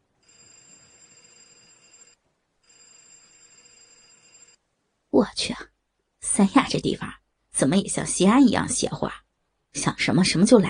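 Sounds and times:
telephone ringing: 0.0 - 4.7
speech: 5.2 - 5.7, 6.4 - 9.2, 9.8 - 10.6.

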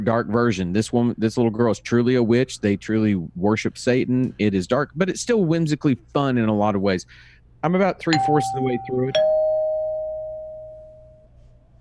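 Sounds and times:
speech: 0.0 - 9.3
doorbell chime: 8.2 - 11.2.

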